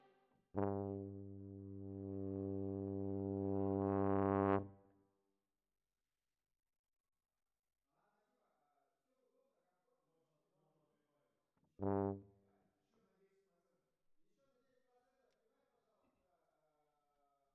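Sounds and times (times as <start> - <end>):
tuba: 0.0 - 5.0, 11.8 - 12.7.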